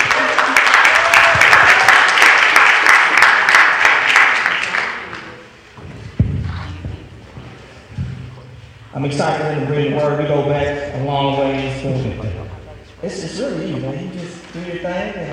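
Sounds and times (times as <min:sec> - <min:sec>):
crowd applauding: 0:00.0 - 0:05.5
low thumps: 0:05.8 - 0:09.2
speech: 0:09.0 - 0:12.4, 0:13.0 - 0:15.3.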